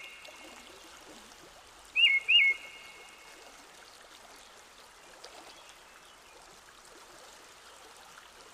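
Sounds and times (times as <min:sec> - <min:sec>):
mockingbird singing: 0:02.0 - 0:02.7.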